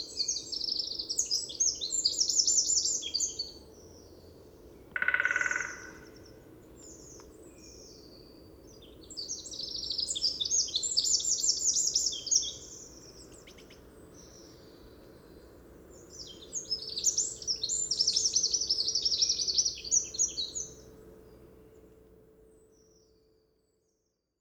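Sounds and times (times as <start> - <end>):
Eurasian wren trilling song: 0.0 - 3.6, 5.0 - 14.8, 15.9 - 20.9
Eurasian wren grating buzz: 5.0 - 6.3.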